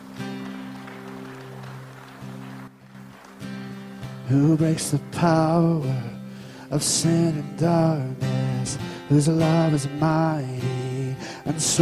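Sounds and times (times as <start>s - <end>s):
audience applauding: 0.0s - 5.4s
speech: 4.3s - 6.1s, 6.7s - 10.8s, 11.5s - 11.8s.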